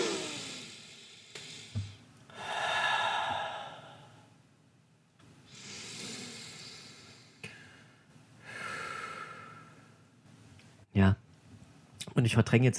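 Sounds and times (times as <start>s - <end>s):
deep breathing: 0.0s - 4.4s, 5.5s - 10.1s
speech: 11.0s - 11.2s, 12.2s - 12.7s.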